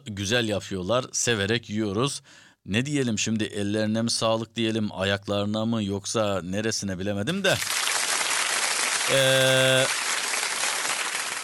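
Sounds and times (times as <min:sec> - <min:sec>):
speech: 0:00.1 - 0:07.8, 0:09.1 - 0:10.0
audience applause: 0:07.6 - 0:11.4.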